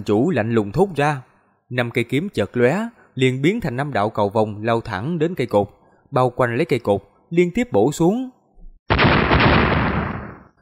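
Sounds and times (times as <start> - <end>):
speech: 0.0 - 8.4
rapid series of explosions: 8.9 - 10.6.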